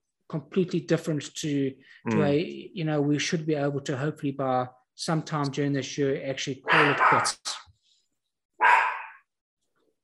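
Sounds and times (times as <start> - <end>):
speech: 0.3 - 7.7
puppy barking: 6.7 - 7.3, 8.6 - 9.2.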